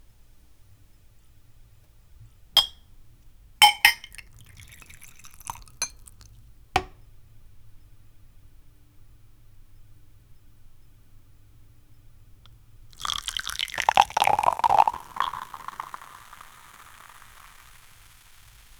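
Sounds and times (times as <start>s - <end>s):
drink being opened: 3.6s - 6.2s, 13.0s - 16.6s.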